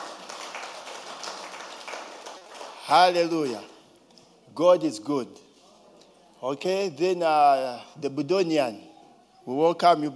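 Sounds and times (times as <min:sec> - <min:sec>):
audience hand clapping: 0:00.0 - 0:03.3
speech: 0:02.9 - 0:03.7, 0:04.6 - 0:05.4, 0:06.4 - 0:08.9, 0:09.5 - 0:10.1.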